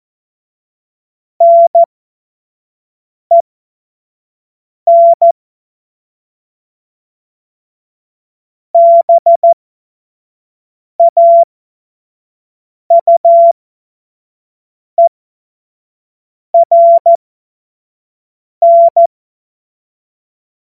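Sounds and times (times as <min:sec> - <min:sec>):
CW Morse code beeps: 0:01.4 - 0:01.9, 0:04.9 - 0:05.3, 0:08.8 - 0:09.6, 0:11.0 - 0:11.5, 0:12.9 - 0:13.5, 0:16.6 - 0:17.2, 0:18.6 - 0:19.1.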